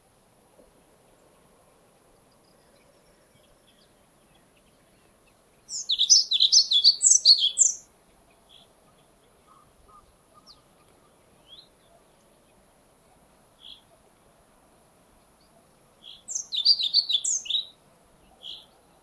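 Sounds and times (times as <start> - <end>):
pied flycatcher: 2.2 - 12.5, 15.2 - 19.0.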